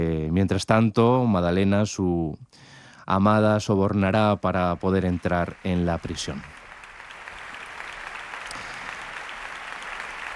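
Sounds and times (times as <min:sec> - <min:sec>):
speech: 0:00.3 - 0:06.5
concert audience applause: 0:04.5 - 0:10.3.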